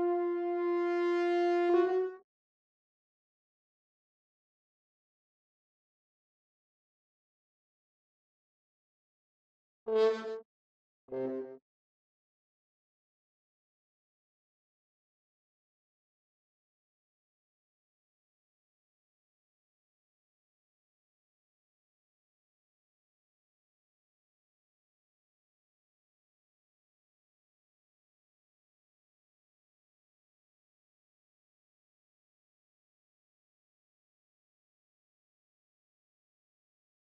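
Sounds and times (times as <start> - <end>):
horn: 0.0 - 2.2, 9.9 - 10.4, 11.1 - 11.6.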